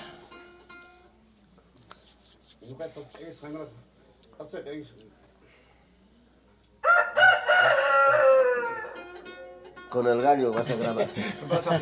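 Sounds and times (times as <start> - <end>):
rooster crowing: 6.8 - 9.2
laughter: 10.5 - 11.8.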